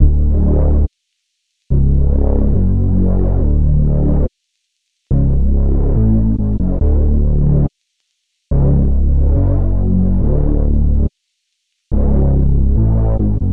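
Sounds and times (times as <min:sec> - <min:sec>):
bass: 0:00.0 - 0:00.9, 0:01.7 - 0:04.3, 0:05.1 - 0:07.7, 0:08.5 - 0:11.1, 0:11.9 - 0:13.5.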